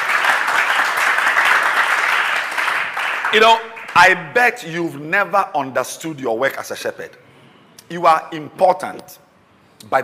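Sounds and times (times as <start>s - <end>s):
crowd clapping: 0.0s - 4.5s
speech: 3.3s - 7.2s, 7.9s - 9.2s, 9.8s - 10.0s.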